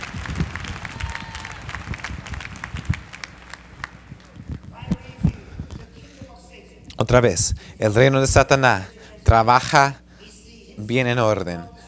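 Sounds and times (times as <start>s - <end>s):
audience applauding: 0.0s - 4.4s
speech: 7.0s - 10.0s, 10.8s - 11.8s.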